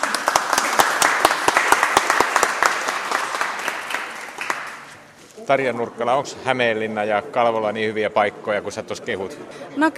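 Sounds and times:
audience applause: 0.0s - 5.0s
speech: 5.5s - 9.9s.

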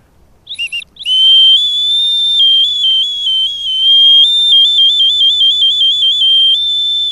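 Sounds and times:
star-patterned two-tone willow whistle tooting: 0.4s - 7.0s.

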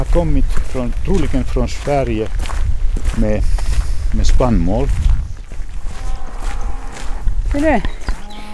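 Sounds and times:
speech: 0.2s - 2.5s, 3.2s - 5.0s, 7.6s - 8.0s
cow mooing: 5.8s - 7.2s, 8.1s - 8.5s.

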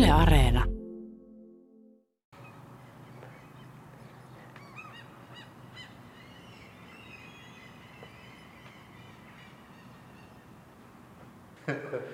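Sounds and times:
speech: 0.1s - 0.7s
gulls calling outside: 2.4s - 10.7s
laughter: 11.6s - 12.1s.

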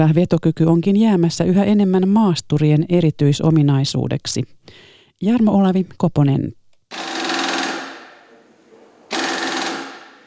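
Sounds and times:
speech: 0.0s - 6.6s
nut wrench whirring while fitting a tow hitch to a hybrid car in Vantaa: 6.9s - 8.1s, 9.1s - 10.2s.

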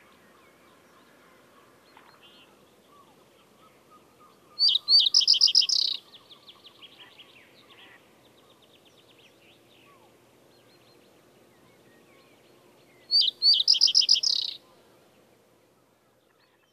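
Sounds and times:
faint bird twittering: 1.9s - 7.1s, 13.1s - 14.8s
Common Reed Bunting singing: 2.9s - 8.0s, 13.0s - 14.8s.

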